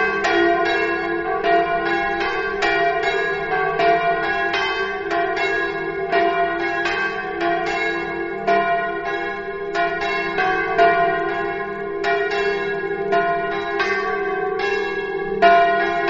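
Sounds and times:
bells ringing: 0:00.0 - 0:16.0.

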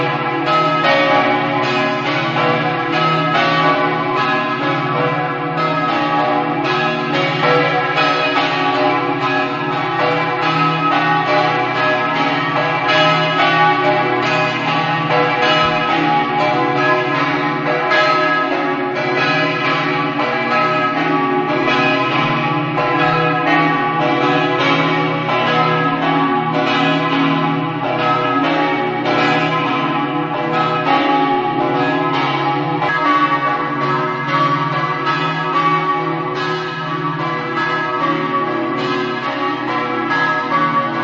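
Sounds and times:
bells in Venzone: 0:00.0 - 0:41.0.

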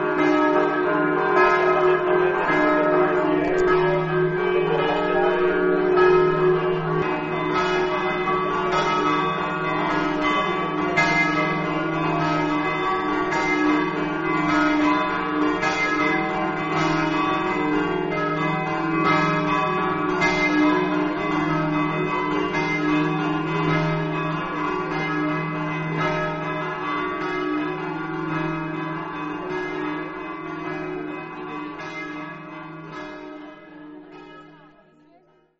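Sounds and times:
bells ringing in Castelmonte: 0:00.0 - 0:35.5.

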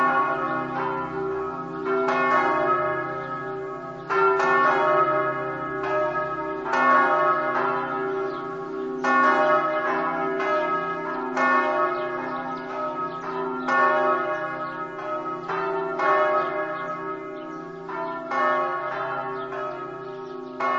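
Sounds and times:
bells ringing in Caneva: 0:00.0 - 0:20.7.

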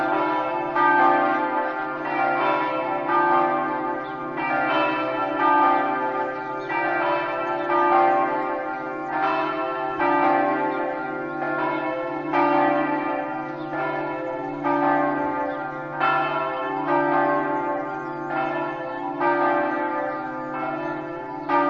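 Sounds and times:
bells ringing: 0:00.0 - 0:21.6.

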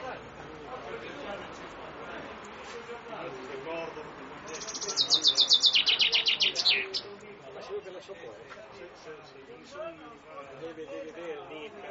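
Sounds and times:
Common chaffinch song trill: 0:04.6 - 0:07.1.

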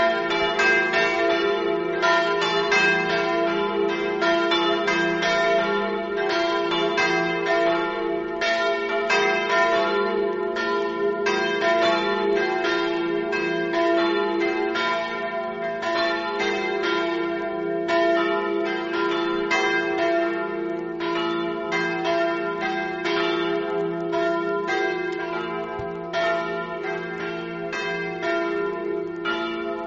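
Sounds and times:
bells ringing in Morsano: 0:00.0 - 0:29.8.

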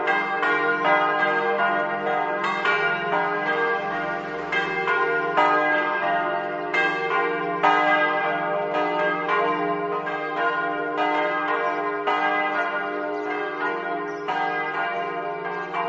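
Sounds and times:
bells ringing: 0:00.0 - 0:15.8.

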